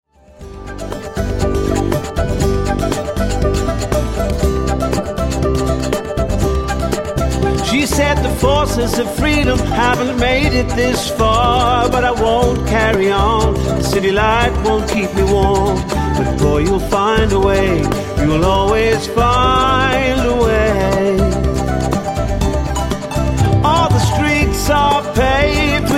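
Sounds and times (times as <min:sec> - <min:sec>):
rhythm: 0:00.3 - 0:25.9.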